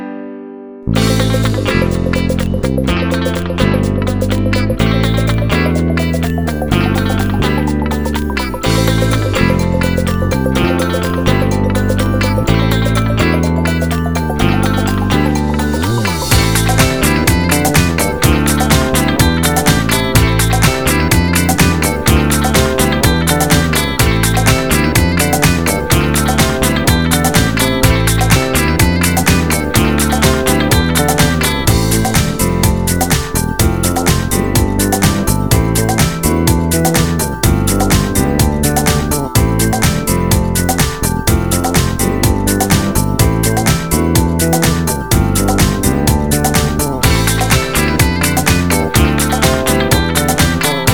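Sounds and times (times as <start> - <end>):
Russian rock music: 0.9 - 50.9.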